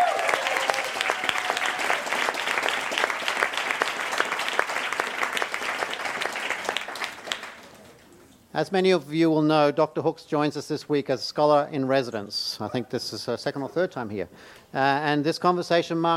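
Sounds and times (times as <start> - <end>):
room full of people applauding: 0.0 - 8.0
speech: 8.6 - 16.1.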